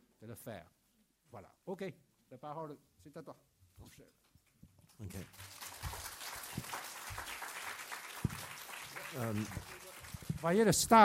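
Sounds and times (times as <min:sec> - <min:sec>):
speech: 0:00.2 - 0:04.2, 0:05.0 - 0:05.5, 0:09.1 - 0:09.8, 0:10.4 - 0:11.0
audience clapping: 0:04.9 - 0:11.0.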